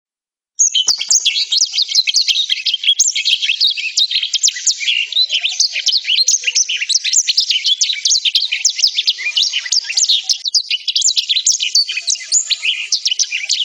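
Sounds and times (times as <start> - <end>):
black-throated canary singing: 0.6 - 13.6.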